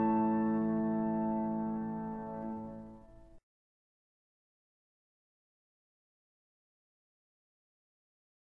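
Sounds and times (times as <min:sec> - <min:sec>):
melody on the open E string: 0:00.0 - 0:03.2.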